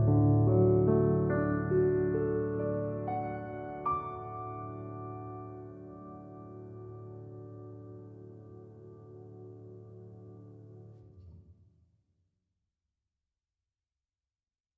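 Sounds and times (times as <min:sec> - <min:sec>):
peaceful piano miniature: 0:00.0 - 0:11.4.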